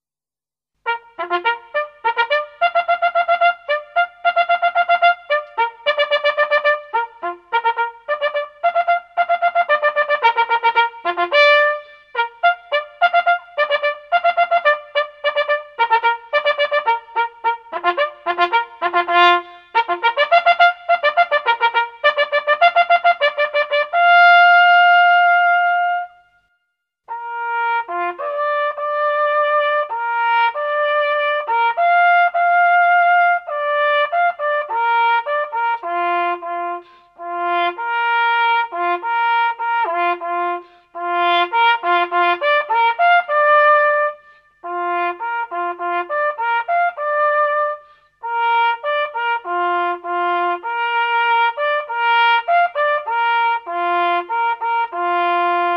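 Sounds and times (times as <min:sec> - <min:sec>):
hunting horn blowing: 0:00.8 - 0:26.4, 0:27.1 - 0:32.6, 0:33.4 - 0:55.7.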